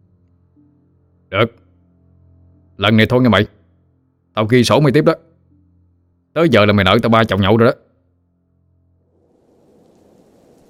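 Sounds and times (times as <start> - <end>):
low steady humming tone: 0.0 - 4.4, 5.2 - 6.4, 7.9 - 10.6
speech: 1.3 - 1.6, 2.8 - 3.6, 4.4 - 5.3, 6.4 - 7.9
heavy storm rain: 9.1 - 10.6
thunder: 9.1 - 10.6.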